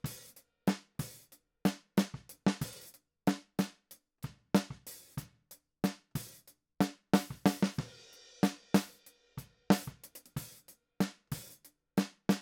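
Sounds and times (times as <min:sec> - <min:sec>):
snare drum: 0:00.0 - 0:03.7, 0:05.9 - 0:09.0, 0:09.7 - 0:12.3.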